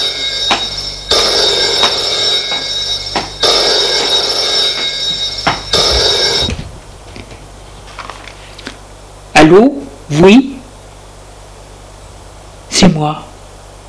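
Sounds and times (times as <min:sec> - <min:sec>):
old-style telephone bell ringing: 0:00.0 - 0:06.7
speech: 0:09.5 - 0:10.5, 0:12.9 - 0:13.3.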